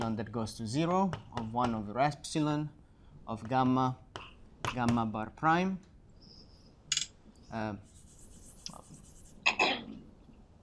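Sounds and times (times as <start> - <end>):
speech: 0.2 - 4.0, 4.6 - 5.9, 7.5 - 7.9
writing strokes during a mathematics lecture: 7.8 - 9.4.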